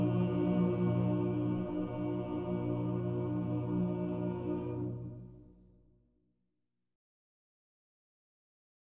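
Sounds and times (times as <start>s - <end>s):
choir singing: 0.0s - 5.7s.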